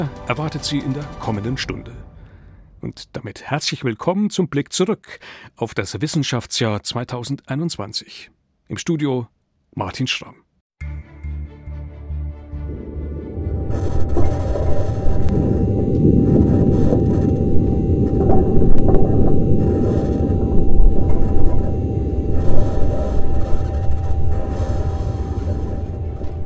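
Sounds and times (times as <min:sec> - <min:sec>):
speech: 0:00.0 - 0:02.0, 0:02.8 - 0:10.4
Mars rover rolling: 0:13.3 - 0:26.4.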